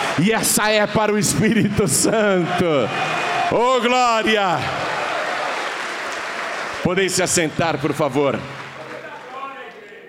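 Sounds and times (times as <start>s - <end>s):
crowd applauding: 0.0s - 10.0s
speech: 0.2s - 5.0s, 6.8s - 8.6s.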